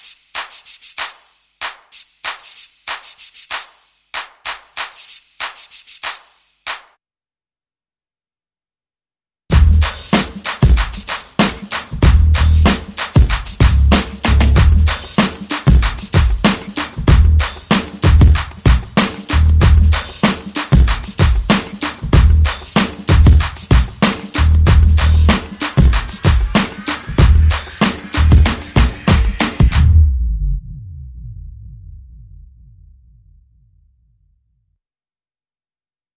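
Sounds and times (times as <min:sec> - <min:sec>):
drums: 0:00.0 - 0:06.9, 0:09.5 - 0:30.6
bass: 0:09.5 - 0:09.9, 0:12.0 - 0:12.7, 0:13.6 - 0:14.9, 0:17.1 - 0:17.5, 0:18.1 - 0:18.4, 0:19.3 - 0:20.0, 0:22.2 - 0:22.5, 0:23.1 - 0:23.4, 0:24.4 - 0:25.4, 0:27.2 - 0:27.6, 0:28.2 - 0:28.6, 0:29.7 - 0:33.2.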